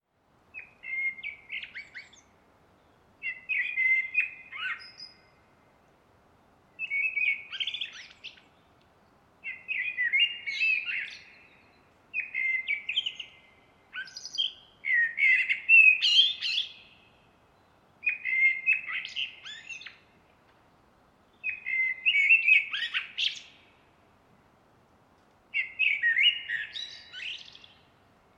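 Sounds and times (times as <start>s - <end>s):
background hiss: 0.0s - 28.3s
common blackbird singing: 0.6s - 2.3s, 3.2s - 5.4s, 6.8s - 8.7s, 9.4s - 20.2s, 21.3s - 23.8s, 25.5s - 28.3s.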